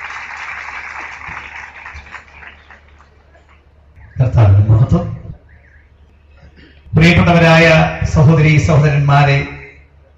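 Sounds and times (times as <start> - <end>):
audience applause welcoming a pastor at a church family meeting: 0.0 - 3.6
speech: 4.3 - 5.2, 7.0 - 9.6.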